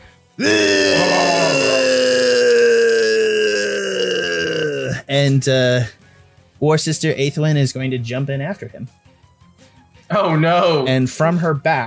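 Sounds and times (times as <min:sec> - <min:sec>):
speech: 0:00.4 - 0:00.7, 0:05.2 - 0:06.0, 0:06.6 - 0:09.0, 0:10.1 - 0:11.8
dramatic death yell of a falling character: 0:00.4 - 0:05.0.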